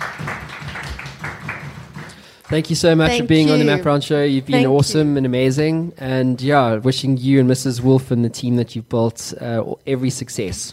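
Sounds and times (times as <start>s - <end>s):
audience applause: 0.0s - 4.0s
speech: 2.5s - 10.7s.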